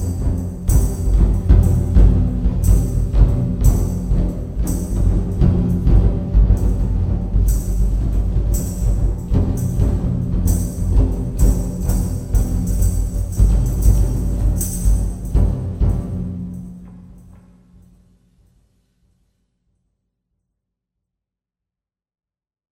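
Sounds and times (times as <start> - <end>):
trommel experiment: 0.0 - 17.9.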